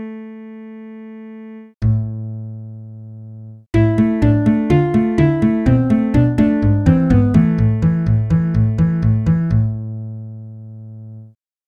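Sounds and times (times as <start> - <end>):
acoustic bass: 1.8 - 10.7.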